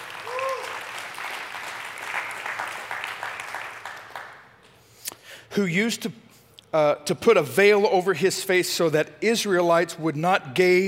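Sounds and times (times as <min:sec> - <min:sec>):
audience applauding: 0:00.0 - 0:04.6
speech: 0:05.5 - 0:10.8.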